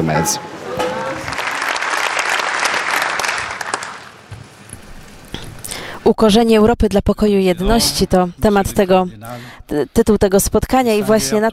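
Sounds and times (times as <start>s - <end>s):
speech: 0.0s - 0.6s, 6.1s - 11.5s
audience applause: 0.8s - 4.2s.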